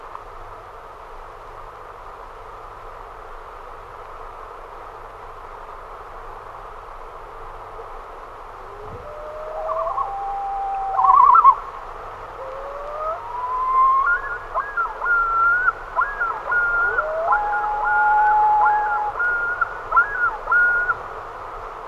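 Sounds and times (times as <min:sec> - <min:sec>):
common loon calling with whistles and tremolo: 0:08.6 - 0:21.0.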